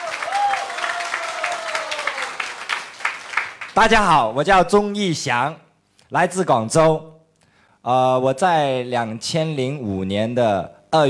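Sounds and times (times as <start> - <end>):
audience applause: 0.0 - 3.8
speech: 3.8 - 7.1, 7.8 - 11.0.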